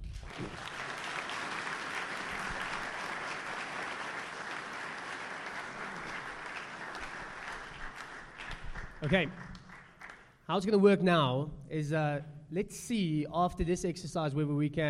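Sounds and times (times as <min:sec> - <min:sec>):
audience applause: 0:00.0 - 0:10.3
speech: 0:09.0 - 0:09.4, 0:10.5 - 0:14.8.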